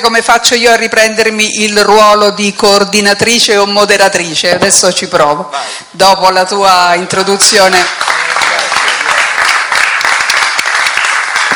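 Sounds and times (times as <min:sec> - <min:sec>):
speech: 0:00.0 - 0:08.2
crowd applause: 0:07.8 - 0:11.5.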